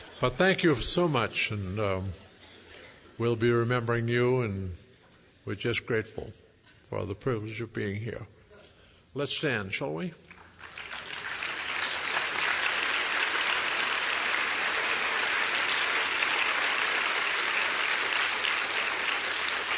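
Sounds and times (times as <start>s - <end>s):
speech: 0.2s - 2.2s, 3.2s - 4.8s, 5.5s - 8.4s, 9.2s - 10.2s
audience clapping: 10.3s - 19.7s.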